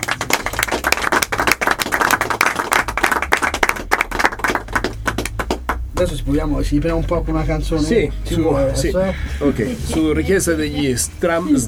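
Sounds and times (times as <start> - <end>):
crowd applause: 0.0 - 5.9
speech: 6.0 - 11.6.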